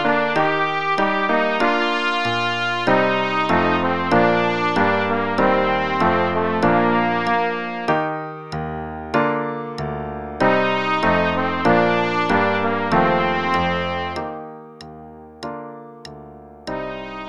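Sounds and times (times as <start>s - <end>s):
trumpet playing both parts: 0.0s - 8.5s, 10.4s - 14.6s, 16.7s - 17.2s.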